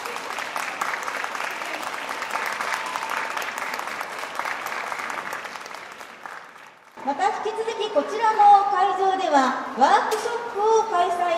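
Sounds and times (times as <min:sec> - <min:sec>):
audience applause: 0:00.0 - 0:07.0
speech: 0:07.1 - 0:11.3.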